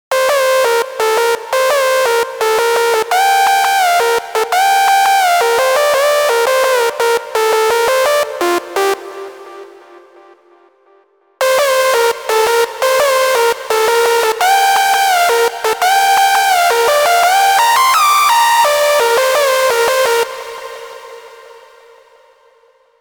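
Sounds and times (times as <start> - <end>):
lead synth: 0.1 - 22.0.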